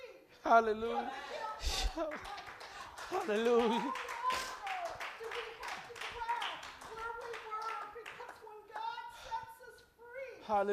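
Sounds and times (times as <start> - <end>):
speech: 0.5 - 2.4, 3.1 - 4.1, 10.5 - 10.7
audience clapping hands: 2.0 - 8.9.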